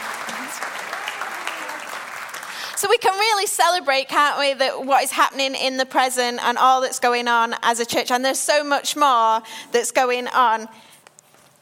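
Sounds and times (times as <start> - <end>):
audience applause: 0.0 - 2.9
speech: 2.8 - 10.9.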